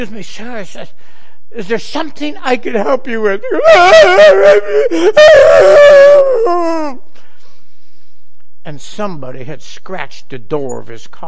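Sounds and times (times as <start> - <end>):
speech: 0.0 - 7.0, 8.6 - 11.2
man imitating loud wailing and sobbing: 2.8 - 7.1.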